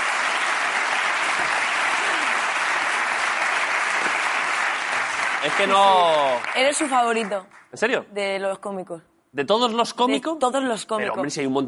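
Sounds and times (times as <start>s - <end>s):
audience applause: 0.0s - 7.4s
speech: 5.4s - 11.6s.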